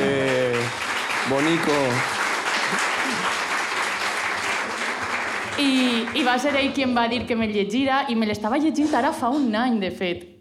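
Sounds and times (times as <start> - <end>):
applause: 0.0 - 7.0
speech: 1.3 - 2.1, 5.6 - 10.3
laughter: 2.5 - 3.5.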